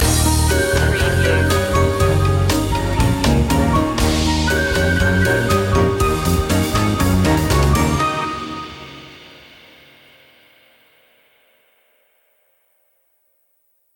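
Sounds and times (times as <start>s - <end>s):
jazzy classy loop ending: 0.0s - 9.0s.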